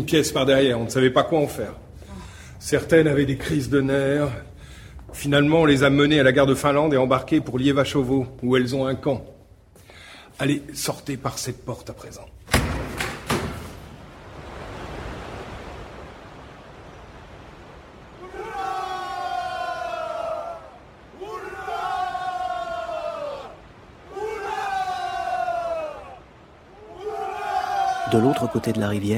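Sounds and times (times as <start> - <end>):
speech: 0.0 - 1.9, 2.6 - 4.5, 5.1 - 9.4, 10.4 - 12.4, 28.1 - 29.1
hoarse clamor of a distant crowd: 18.1 - 28.8.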